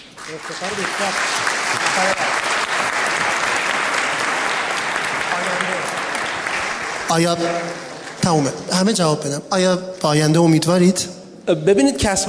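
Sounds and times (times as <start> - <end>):
large audience applause: 0.0 - 8.9
speech: 0.3 - 2.8, 7.1 - 12.2.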